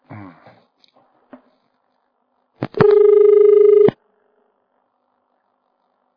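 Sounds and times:
telephone line clicks: 2.6 - 4.0
telephone dial tone after dropped call: 2.8 - 4.0.

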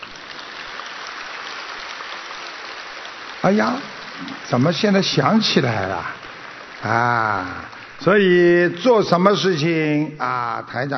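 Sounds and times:
soft audience applause: 0.0 - 10.9
speech: 3.4 - 6.2, 6.8 - 10.9.

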